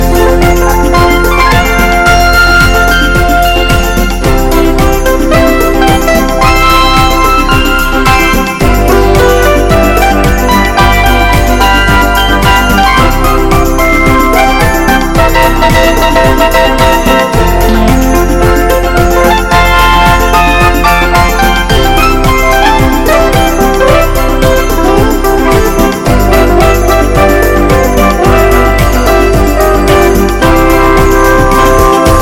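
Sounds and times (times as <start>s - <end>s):
smooth pop music: 0.0s - 32.2s.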